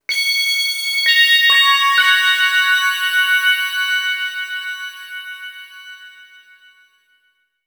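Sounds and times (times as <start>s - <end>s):
bell: 0.0s - 7.6s.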